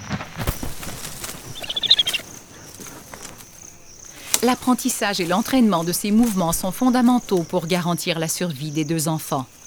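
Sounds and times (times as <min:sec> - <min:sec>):
bird wings flapping: 0:00.1 - 0:07.7
violent landing with wings wide open: 0:00.2 - 0:07.6
sniffing: 0:00.3 - 0:07.7
speech: 0:04.4 - 0:09.6.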